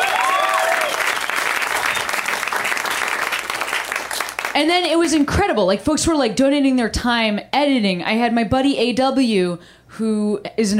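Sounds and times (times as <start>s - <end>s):
audience applause: 0.0s - 4.6s
speech: 4.6s - 10.7s.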